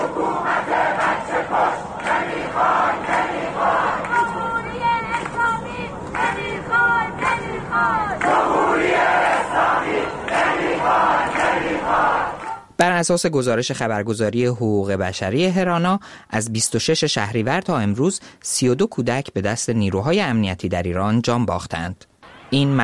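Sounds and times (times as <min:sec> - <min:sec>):
crowd of protesters in the streets of Ekbatan, Iran, chanting slogans against the dictatorship: 0:00.0 - 0:12.7
speech: 0:13.0 - 0:22.8.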